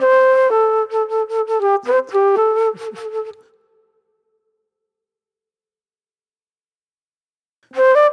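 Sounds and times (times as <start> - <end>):
sweet soul flute: 0.0 - 4.1, 7.7 - 8.1.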